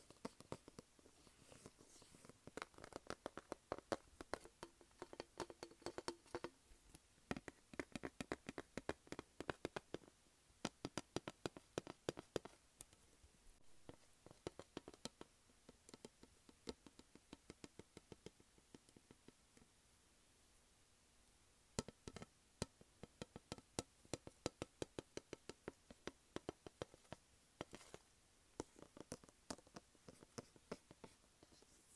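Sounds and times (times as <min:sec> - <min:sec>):
soft scratchy rubbing on a makeup palette: 0:00.0 - 0:03.9
fingernails tapping on a makeup palette: 0:02.4 - 0:06.6, 0:07.3 - 0:13.0, 0:13.8 - 0:19.4, 0:21.8 - 0:28.0, 0:28.6 - 0:31.6.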